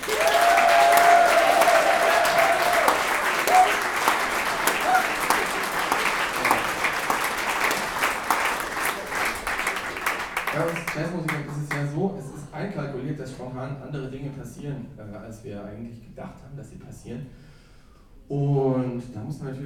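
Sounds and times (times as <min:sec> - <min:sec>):
audience applause: 0:00.0 - 0:11.7
speech: 0:12.2 - 0:17.5, 0:18.3 - 0:19.6.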